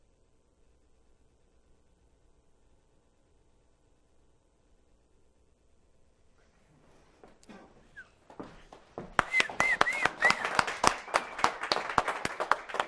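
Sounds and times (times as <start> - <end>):
applause: 8.7 - 12.8.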